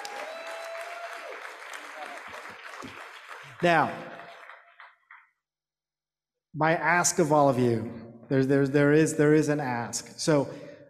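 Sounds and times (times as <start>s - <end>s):
audience applause: 0.0s - 5.2s
speech: 3.6s - 4.1s, 6.6s - 10.7s.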